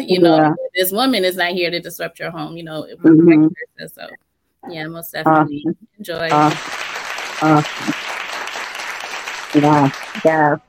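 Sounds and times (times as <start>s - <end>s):
speech: 0.0s - 6.8s, 7.4s - 8.0s, 9.5s - 10.6s
applause sound effect: 6.1s - 10.6s.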